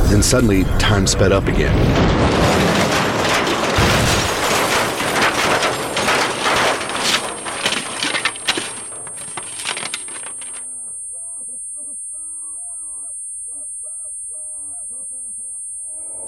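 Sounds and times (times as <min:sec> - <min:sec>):
speech: 0:00.1 - 0:02.5
debris crunching and rattling: 0:01.2 - 0:10.6
car crash impact: 0:01.5 - 0:10.6
metal grinding: 0:01.8 - 0:10.6.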